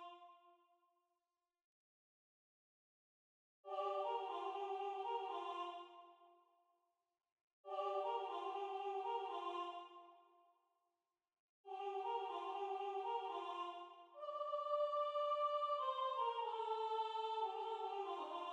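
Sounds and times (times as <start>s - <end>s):
soprano singing na nda syllables: 3.7s - 5.9s, 7.7s - 9.8s, 11.7s - 18.5s.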